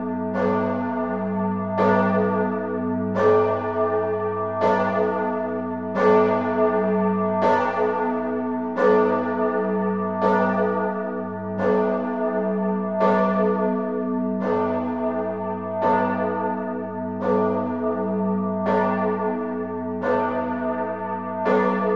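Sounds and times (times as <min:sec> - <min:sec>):
Duomo Cathedral bell towers ringing in Florence: 0:00.0 - 0:21.9.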